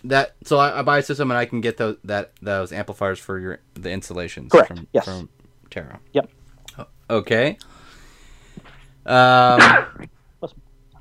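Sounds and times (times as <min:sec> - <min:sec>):
speech: 0:00.0 - 0:07.8, 0:09.0 - 0:10.6
person sneezing: 0:09.5 - 0:10.0.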